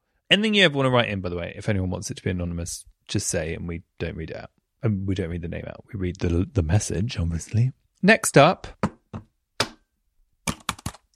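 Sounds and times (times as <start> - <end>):
speech: 0.3 - 8.9
keyboard keys tapping: 10.5 - 11.1.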